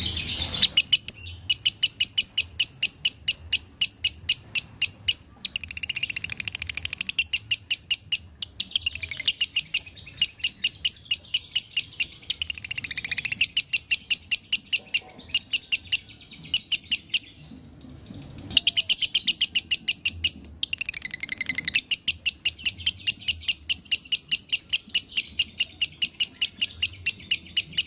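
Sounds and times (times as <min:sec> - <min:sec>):
lovebird song: 0:00.0 - 0:17.6, 0:18.4 - 0:27.8.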